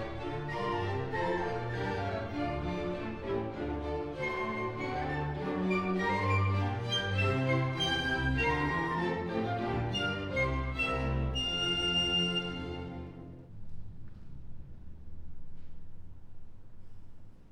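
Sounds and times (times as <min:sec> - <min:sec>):
horn playing an orchestral suite: 0:00.0 - 0:13.5.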